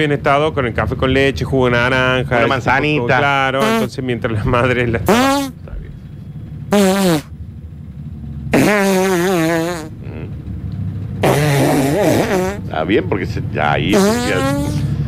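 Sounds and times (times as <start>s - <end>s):
speech: 0.0s - 5.6s, 12.8s - 14.8s
long series of farts: 3.6s - 3.9s, 5.0s - 5.6s, 6.7s - 7.3s, 8.5s - 10.3s, 11.2s - 12.6s, 13.9s - 14.9s.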